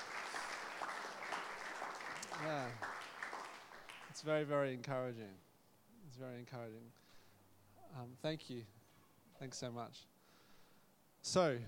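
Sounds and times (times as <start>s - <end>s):
audience applause: 0.0s - 4.2s
speech: 2.4s - 2.9s, 4.2s - 5.5s, 6.1s - 7.0s, 7.9s - 8.8s, 9.4s - 10.1s, 11.2s - 11.6s.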